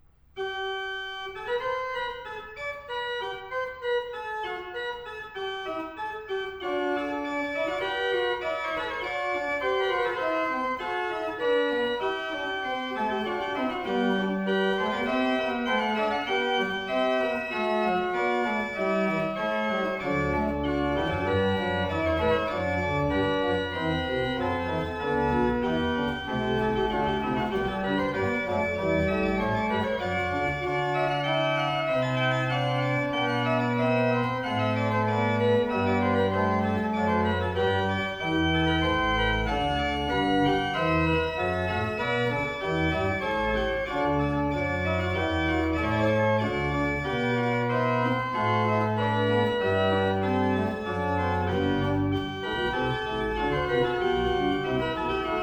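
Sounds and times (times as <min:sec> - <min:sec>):
organ concerto: 0:00.4 - 0:55.4.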